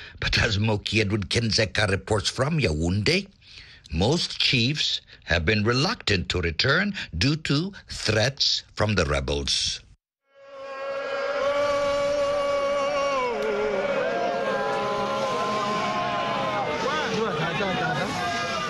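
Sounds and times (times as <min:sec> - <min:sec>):
speech: 0:00.3 - 0:09.8
Vinso people shouting in Kumbu, Cameroon: 0:10.4 - 0:18.6
Vinso people applauding in Kumbu, Cameroon: 0:12.2 - 0:18.6.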